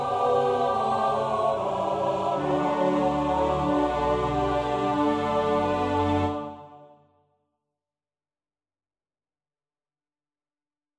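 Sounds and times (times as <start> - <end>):
SATB choir singing: 0.0 - 7.1.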